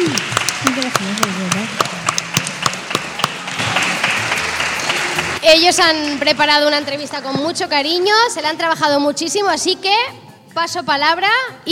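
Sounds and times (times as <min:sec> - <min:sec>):
audience clapping: 0:00.0 - 0:06.4
speech: 0:05.5 - 0:11.7.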